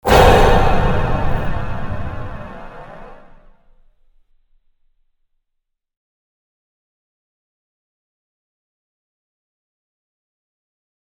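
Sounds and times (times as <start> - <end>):
train hit: 0.0 - 3.4.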